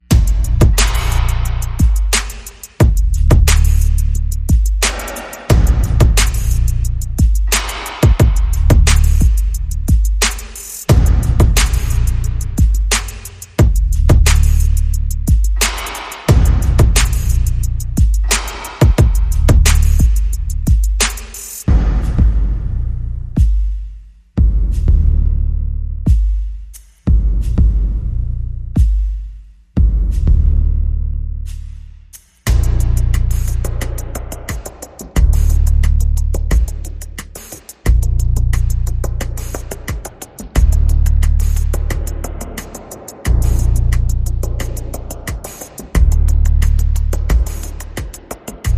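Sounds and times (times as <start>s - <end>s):
bass: 0.0s - 48.7s
percussion: 0.0s - 48.7s.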